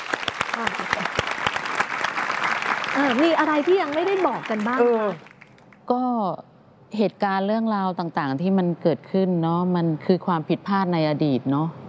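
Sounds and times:
audience applause: 0.0s - 5.6s
speech: 3.0s - 5.3s, 5.9s - 11.8s.

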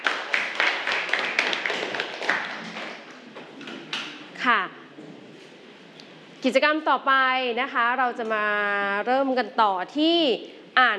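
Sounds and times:
applause from students: 0.0s - 3.2s
speech: 6.4s - 10.9s.

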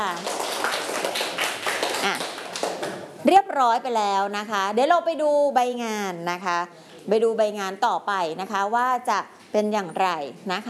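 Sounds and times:
students clapping in a classroom: 0.0s - 3.1s
speech: 3.2s - 10.6s.

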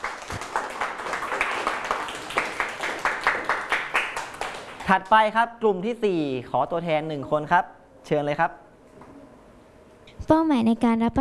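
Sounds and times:
classmates clapping: 0.0s - 5.4s
speech: 4.9s - 8.6s, 10.3s - 11.1s.

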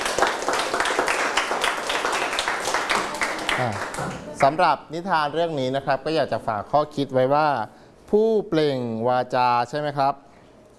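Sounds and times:
applause: 0.0s - 4.2s
speech: 3.6s - 10.2s.

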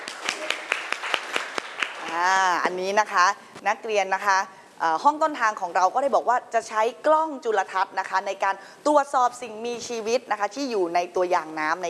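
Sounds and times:
classroom applause: 0.0s - 2.2s
speech: 2.1s - 11.8s.

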